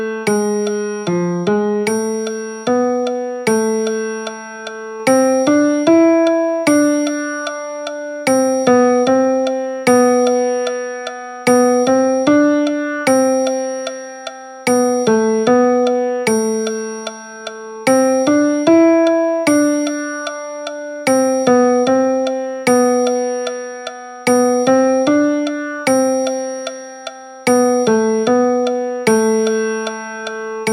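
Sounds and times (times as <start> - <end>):
piano: 0.0 - 30.7.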